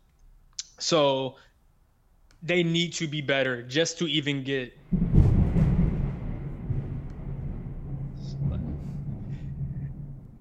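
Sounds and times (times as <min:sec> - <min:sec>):
speech: 0:00.8 - 0:01.5, 0:02.4 - 0:05.1
thunder: 0:04.9 - 0:10.4.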